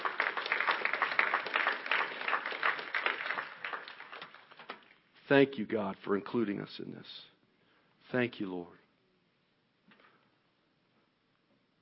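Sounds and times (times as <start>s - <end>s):
audience clapping: 0.0s - 4.9s
speech: 5.3s - 7.3s, 8.1s - 8.8s.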